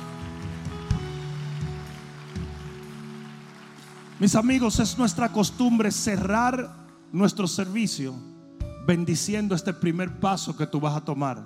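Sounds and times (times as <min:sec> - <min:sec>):
audience applauding: 0:00.0 - 0:06.4
speech: 0:04.2 - 0:11.4.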